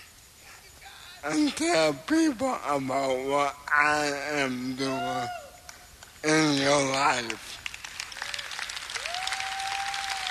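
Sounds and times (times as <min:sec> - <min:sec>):
speech: 0:01.2 - 0:05.4, 0:06.2 - 0:07.6
audience clapping: 0:05.6 - 0:10.2.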